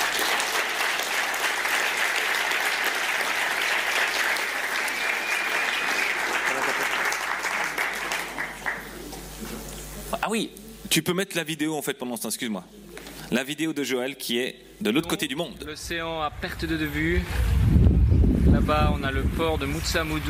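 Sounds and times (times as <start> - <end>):
applause: 0.0 - 9.1
speech: 10.3 - 17.5, 18.6 - 20.2.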